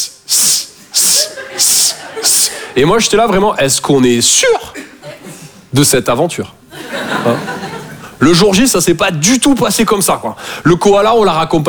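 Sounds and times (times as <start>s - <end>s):
voice imitating a snake's hiss: 0.0s - 2.7s
laughter: 0.9s - 3.0s, 4.6s - 5.6s, 6.7s - 8.2s
speech: 2.8s - 4.8s, 5.7s - 6.6s, 7.2s - 7.6s, 8.2s - 11.6s.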